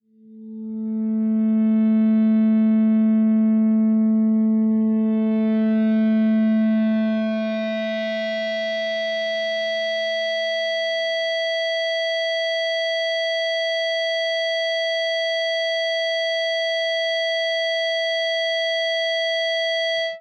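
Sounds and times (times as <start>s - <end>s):
distorted feedback on A fifth string: 0.4s - 20.1s.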